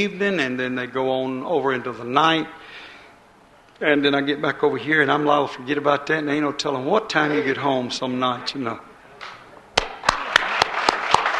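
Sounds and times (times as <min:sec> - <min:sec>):
speech: 0:00.0 - 0:02.8, 0:03.8 - 0:08.9
church congregation clapping hands: 0:09.2 - 0:11.3.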